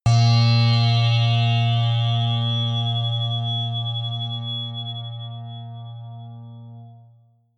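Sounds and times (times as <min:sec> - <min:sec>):
high synth saw hit: 0:00.1 - 0:06.2.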